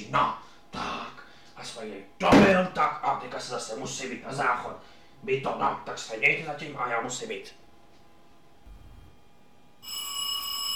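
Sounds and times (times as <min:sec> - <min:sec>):
speech: 0:01.8 - 0:07.6
doorbell ringing: 0:09.8 - 0:10.7.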